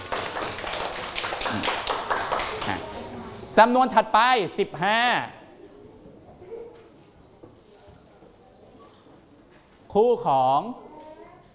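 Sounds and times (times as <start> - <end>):
children clapping in a classroom: 0.0 - 3.1
speech: 3.6 - 5.4, 10.0 - 10.8.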